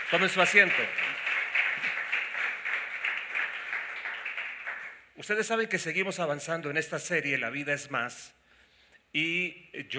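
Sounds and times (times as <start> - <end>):
applause: 0.0 - 5.5
speech: 0.1 - 1.2, 5.2 - 8.4, 9.1 - 9.9.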